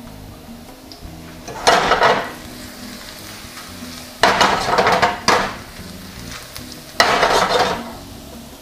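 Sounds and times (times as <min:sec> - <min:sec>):
garlic sizzling in hot oil: 0:00.0 - 0:08.6
stirring and scraping against the pan: 0:01.2 - 0:08.1.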